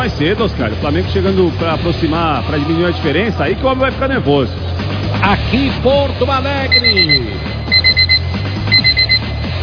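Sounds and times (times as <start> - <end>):
speech: 0.0 - 7.5
alarm clock alert jingle of rapid high-pitched electronic beeps: 6.7 - 9.5.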